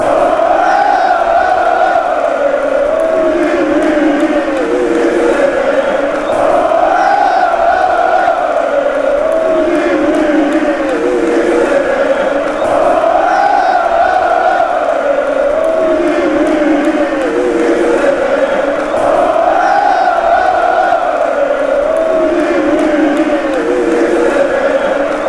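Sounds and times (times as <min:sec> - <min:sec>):
fans chanting: 0:00.0 - 0:25.2.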